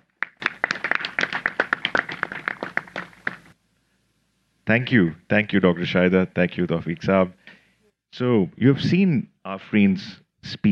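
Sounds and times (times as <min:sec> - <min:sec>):
audience applause: 0:00.0 - 0:03.5
speech: 0:04.7 - 0:07.4, 0:08.1 - 0:10.6.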